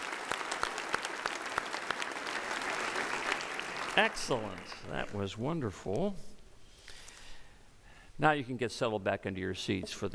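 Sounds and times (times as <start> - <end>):
audience applause: 0.0 - 5.2
speech: 4.0 - 6.3, 8.2 - 10.1.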